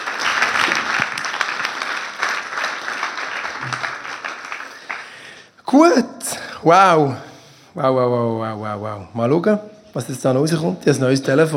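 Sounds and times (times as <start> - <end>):
audience applause: 0.0 - 5.3
speech: 5.7 - 11.5.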